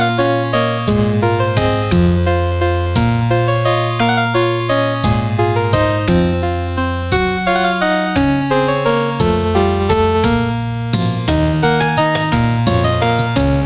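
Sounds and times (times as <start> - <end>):
Celtic harp: 0.0 - 13.6.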